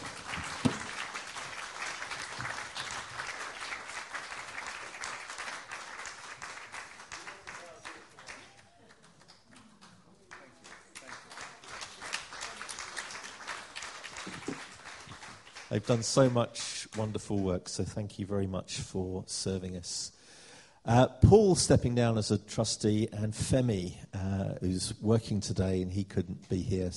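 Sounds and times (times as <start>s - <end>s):
audience applauding: 0.0s - 17.1s
speech: 15.8s - 20.2s, 20.8s - 26.9s.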